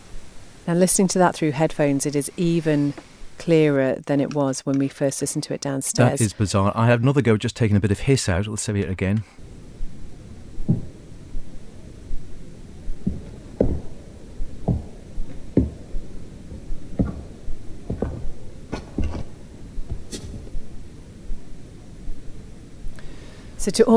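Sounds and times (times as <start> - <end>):
speech: 0.7 - 9.4, 23.7 - 23.9
heel-toe footsteps on floor above: 14.7 - 15.8, 17.0 - 20.5.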